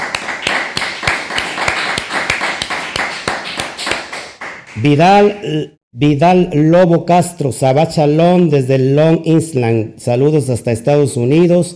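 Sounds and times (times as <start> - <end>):
applause: 0.0 - 5.0
speech: 4.8 - 11.7.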